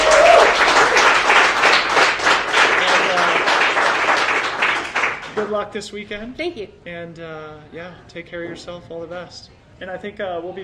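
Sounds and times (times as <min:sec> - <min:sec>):
audience applause: 0:00.0 - 0:05.6
speech: 0:05.5 - 0:10.6.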